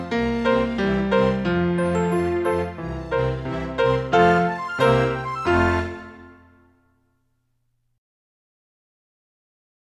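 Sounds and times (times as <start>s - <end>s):
solo with accompaniment: 0.0s - 6.8s.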